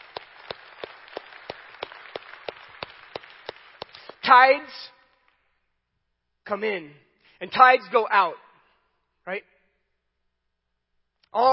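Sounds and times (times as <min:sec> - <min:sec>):
audience applause: 0:00.0 - 0:04.2
speech: 0:04.3 - 0:05.0, 0:06.5 - 0:08.4, 0:09.3 - 0:09.5, 0:11.3 - 0:11.5.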